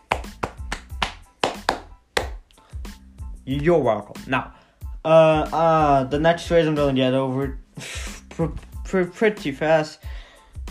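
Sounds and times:
small applause, hand clapping: 0.0s - 2.6s
speech: 3.5s - 10.2s.

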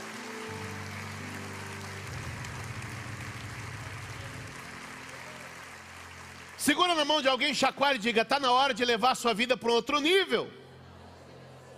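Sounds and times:
audience applause: 0.0s - 8.1s
speech: 6.6s - 10.6s.

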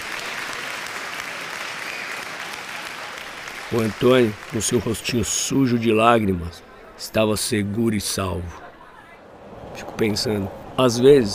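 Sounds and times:
crowd applauding: 0.0s - 6.0s
speech: 3.7s - 8.6s, 9.8s - 11.3s.

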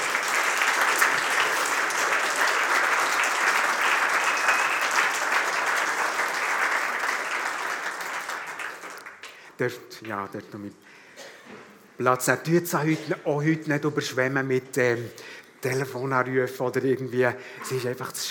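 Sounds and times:
audience applauding: 0.0s - 9.4s
speech: 9.6s - 11.0s, 11.6s - 18.2s.

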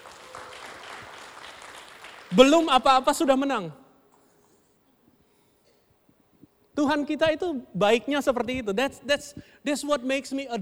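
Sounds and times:
audience applause: 0.0s - 2.4s
speech: 2.3s - 3.8s, 6.8s - 10.6s.

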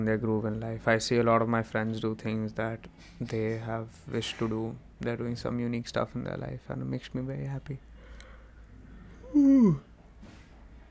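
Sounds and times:
speech: 0.0s - 7.9s, 9.3s - 9.9s
person yawning: 9.2s - 9.9s.

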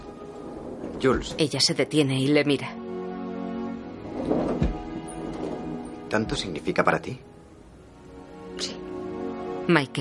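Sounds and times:
speech: 1.0s - 2.8s, 6.1s - 7.3s, 9.7s - 10.0s
door being stopped from closing: 4.1s - 5.6s.

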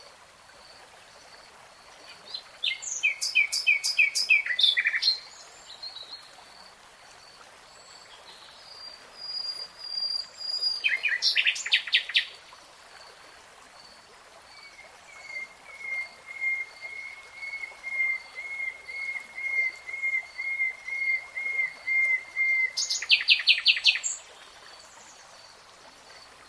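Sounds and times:
nightingale song: 2.0s - 6.3s, 7.8s - 12.3s, 14.6s - 25.2s.

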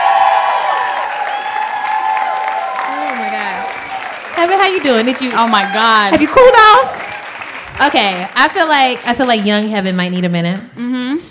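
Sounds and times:
faint cheering: 0.0s - 7.6s
audience applause: 0.0s - 10.3s
speech: 4.4s - 7.0s, 7.8s - 11.2s.

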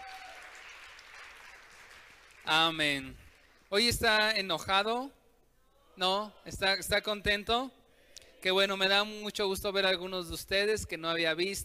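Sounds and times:
crowd applause: 0.0s - 2.5s
speech: 2.5s - 5.2s, 6.0s - 7.8s, 8.4s - 11.6s.

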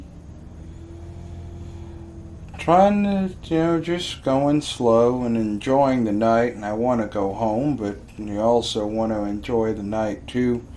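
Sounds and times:
car driving along a highway at night: 0.0s - 10.7s
speech: 2.6s - 10.7s.

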